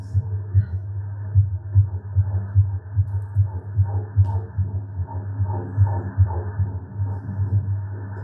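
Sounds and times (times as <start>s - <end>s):
fast fetal heartbeat on ultrasound doppler: 0.0s - 8.2s
low hum: 0.0s - 8.2s.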